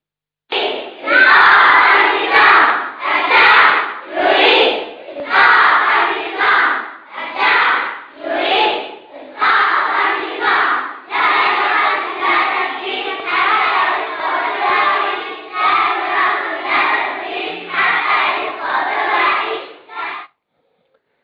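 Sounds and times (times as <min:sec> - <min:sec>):
young children chanting a political slogan: 0:00.5 - 0:20.3.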